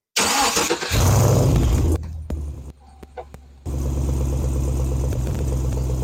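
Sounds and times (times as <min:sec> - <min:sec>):
V8 engine of a 2014 Chevy SS or 1971 Z28 Camaro 383 stroker: 0:00.2 - 0:02.8, 0:03.7 - 0:06.0
V8 engine deep rumbling idle: 0:01.0 - 0:06.0.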